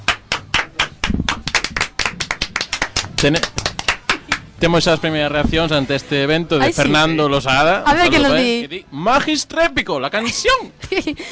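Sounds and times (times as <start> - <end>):
audience applause: 0.1 - 4.4
speech: 3.2 - 3.6, 4.6 - 11.3.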